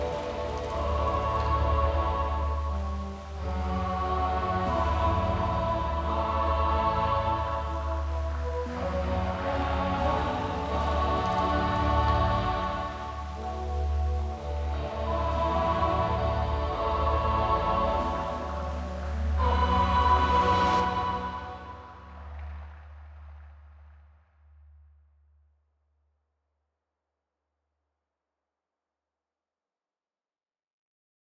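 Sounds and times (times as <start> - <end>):
gentle synth pads: 0.0 - 22.8.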